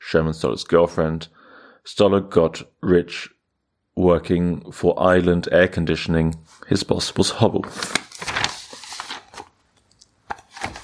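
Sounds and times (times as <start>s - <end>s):
speech: 0.1s - 3.4s, 4.0s - 8.4s
page turning: 7.6s - 9.7s, 10.3s - 10.8s.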